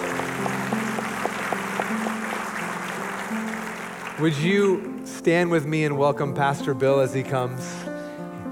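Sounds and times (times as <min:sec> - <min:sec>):
audience applauding: 0:00.0 - 0:05.0
speech: 0:04.2 - 0:07.9.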